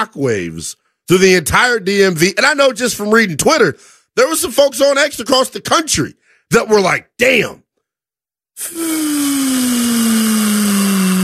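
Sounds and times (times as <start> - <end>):
speech: 0.0 - 7.6, 8.6 - 10.7
air let out of a balloon: 8.6 - 11.2.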